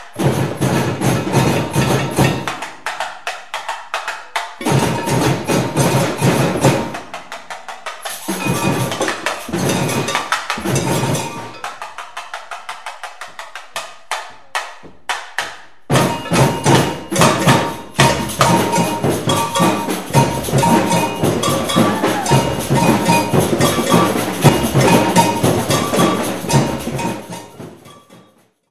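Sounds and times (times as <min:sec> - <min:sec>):
samba band playing: 0:00.1 - 0:02.9, 0:04.4 - 0:12.3, 0:15.9 - 0:28.4.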